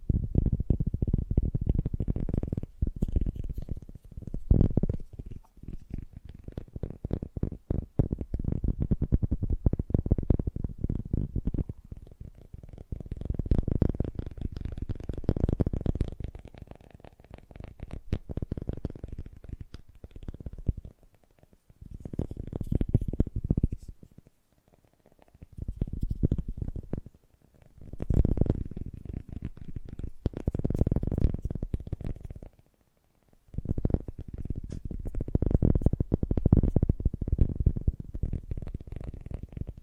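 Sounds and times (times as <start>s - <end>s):
fast gentle tapping: 0.0s - 32.7s, 33.4s - 39.8s.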